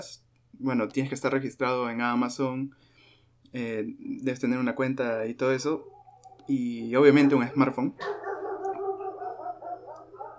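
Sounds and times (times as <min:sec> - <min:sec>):
speech: 0:00.0 - 0:02.9, 0:03.5 - 0:08.2
dogs: 0:05.6 - 0:10.3.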